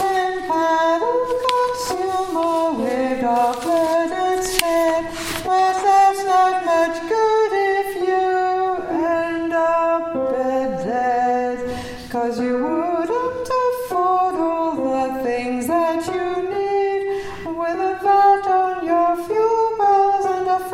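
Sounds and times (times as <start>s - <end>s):
soprano singing a verse: 0.0s - 20.7s.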